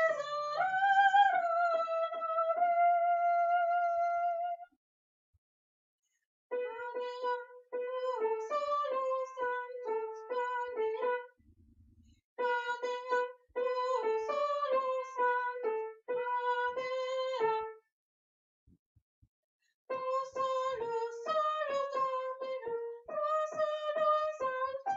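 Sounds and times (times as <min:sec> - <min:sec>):
soprano singing a Gloria: 0:00.0 - 0:04.6, 0:06.5 - 0:11.3, 0:12.4 - 0:17.7, 0:19.9 - 0:24.9.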